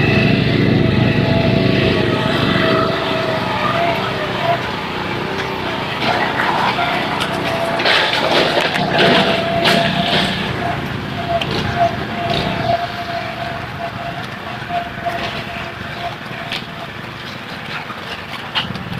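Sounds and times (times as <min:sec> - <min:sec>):
lawn aerator running: 0:00.0 - 0:18.9.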